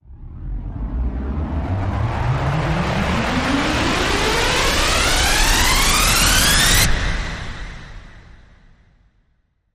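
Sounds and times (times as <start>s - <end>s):
riser sweep: 0.4s - 8.1s.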